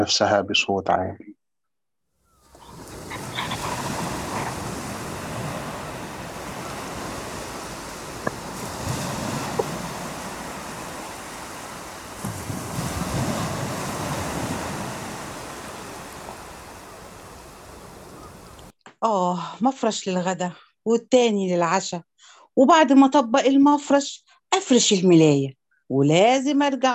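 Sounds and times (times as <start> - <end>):
speech: 0.0 - 1.3, 19.0 - 26.9
sea waves heard through a house window overlooking the sea: 2.4 - 18.7.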